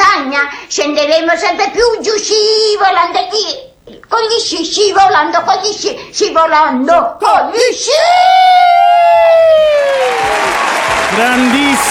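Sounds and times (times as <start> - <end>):
speech: 0.4 - 11.8
audience applause in a standing ovation: 9.3 - 11.8.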